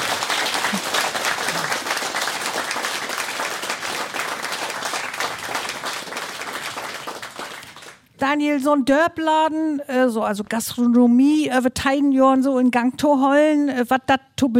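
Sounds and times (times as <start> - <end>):
audience applause: 0.0 - 8.1
speech: 8.2 - 14.5.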